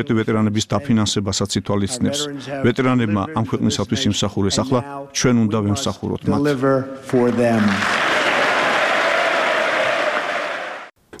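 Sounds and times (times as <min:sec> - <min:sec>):
speech: 0:00.0 - 0:08.0
Members of Congress giving an ovation after Trump's speech: 0:07.1 - 0:11.0.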